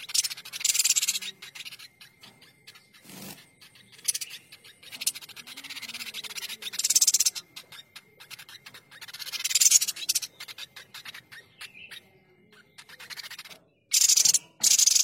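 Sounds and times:
streaked spiderhunter shrill chattering: 0:00.0 - 0:15.0.

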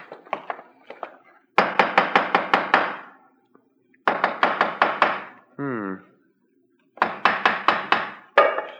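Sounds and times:
hammer tapping on stone wall: 0:01.6 - 0:03.1, 0:04.0 - 0:05.3, 0:07.0 - 0:08.7.

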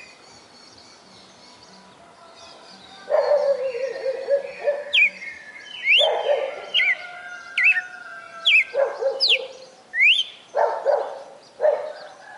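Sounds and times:
female red-cowled cardinal singing in Fortaleza-CE: 0:03.2 - 0:10.4.

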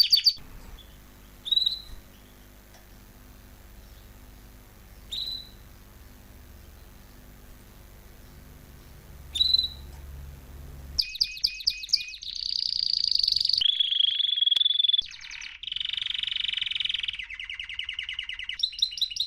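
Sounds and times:
canary call notes: 0:00.0 - 0:02.0, 0:05.1 - 0:05.6, 0:09.3 - 0:09.9, 0:11.0 - 0:19.2
faint background hiss: 0:00.0 - 0:11.0.

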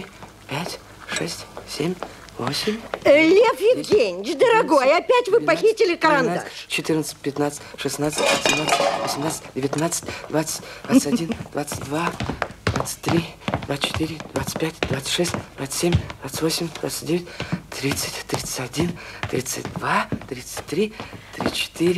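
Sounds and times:
speech: 0:00.5 - 0:21.9
eggs placed into a small saucepan: 0:08.1 - 0:09.3.

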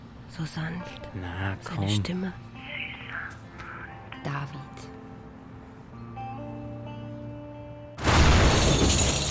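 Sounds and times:
speech: 0:00.3 - 0:02.5, 0:04.2 - 0:05.0
bomb explosion in a grocery shop: 0:08.0 - 0:09.2.

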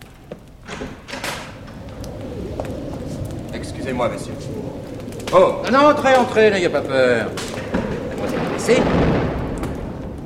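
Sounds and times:
door opening with dull thud and panel scrape: 0:00.2 - 0:05.1
speech: 0:03.6 - 0:07.5, 0:08.6 - 0:09.3.

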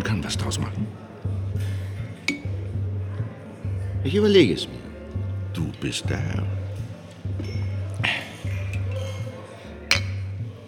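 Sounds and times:
low hum of voices: 0:00.0 - 0:10.6
speech: 0:00.3 - 0:01.1, 0:04.0 - 0:04.8, 0:05.6 - 0:06.6
glasses clinking in a toast: 0:02.2 - 0:02.8, 0:08.5 - 0:10.4.

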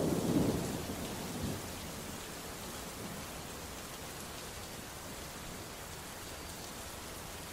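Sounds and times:
thunderstorm thunder: 0:00.0 - 0:01.7
heavy rain during a thunderstorm: 0:00.0 - 0:07.5.

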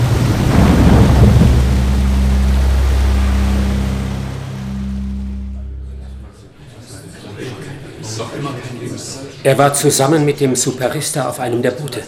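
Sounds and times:
huge flood wave surge of rushing water: 0:00.0 - 0:05.8
deep droning hum: 0:00.0 - 0:06.7
speech: 0:09.4 - 0:12.0.

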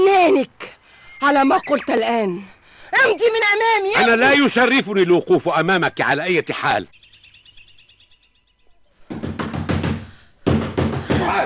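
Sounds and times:
faint high chirping: 0:00.9 - 0:09.1
speech: 0:01.2 - 0:07.0
loud rapid knocking on a room door: 0:09.1 - 0:11.3.

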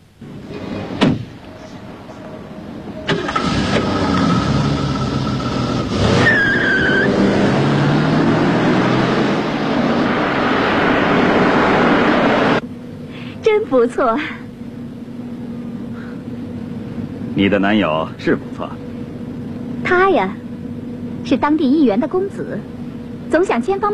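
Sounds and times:
Jaguar car engine starting and driving off: 0:00.0 - 0:23.9
car door shutting: 0:00.7 - 0:01.5
high squeal: 0:05.3 - 0:07.3
speech: 0:13.7 - 0:14.4, 0:17.4 - 0:18.7, 0:19.9 - 0:20.4, 0:21.3 - 0:23.9.

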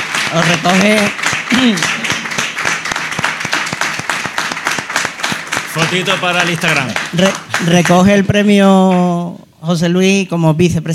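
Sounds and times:
audience applause at an award ceremony honouring an astronomy association: 0:00.0 - 0:08.5
speech: 0:00.3 - 0:01.9, 0:05.8 - 0:10.9.

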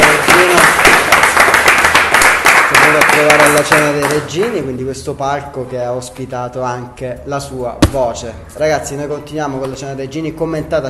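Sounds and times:
audience applause on a stage show for a very young performer: 0:00.0 - 0:03.8
speech: 0:03.6 - 0:10.8.

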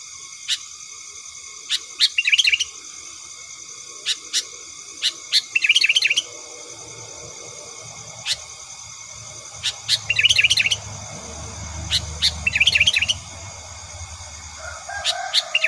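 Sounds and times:
Sooty-headed bulbul chattering: 0:03.9 - 0:15.6.

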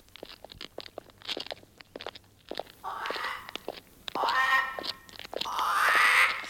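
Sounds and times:
crunching footsteps: 0:00.0 - 0:06.4
crow cawing: 0:02.8 - 0:03.5, 0:04.2 - 0:06.4.

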